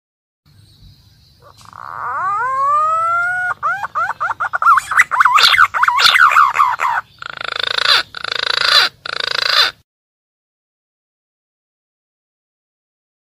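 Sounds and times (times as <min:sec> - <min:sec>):
green pigeon calling: 0:01.4 - 0:09.8.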